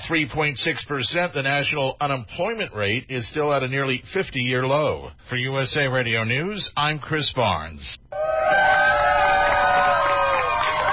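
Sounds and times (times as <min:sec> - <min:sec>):
speech: 0:00.1 - 0:08.1
crowd cheering at a gay pride rainbow flag raising over the Wisconsin state capitol: 0:08.1 - 0:10.9.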